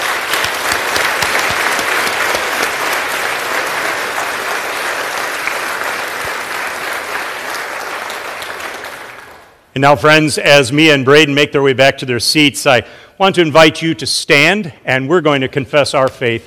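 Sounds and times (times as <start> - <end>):
audience applause: 0.0 - 9.6
speech: 9.8 - 16.4.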